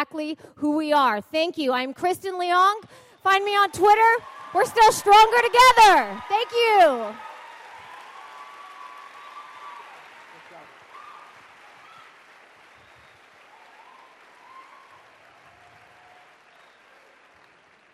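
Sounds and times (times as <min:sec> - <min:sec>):
speech: 0:00.0 - 0:07.3
audience applause: 0:03.5 - 0:17.9.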